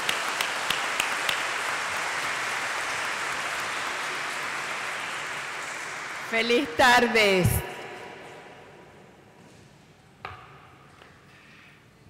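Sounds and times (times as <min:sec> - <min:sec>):
audience applause: 0:00.0 - 0:06.7
speech: 0:06.3 - 0:07.6.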